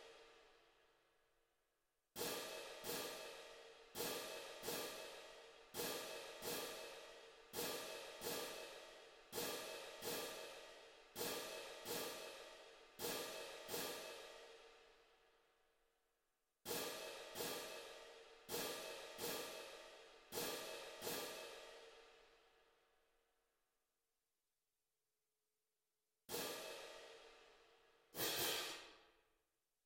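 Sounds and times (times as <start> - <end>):
cymbals: 2.2 - 14.7, 16.7 - 22.3, 26.3 - 27.4, 28.1 - 29.1.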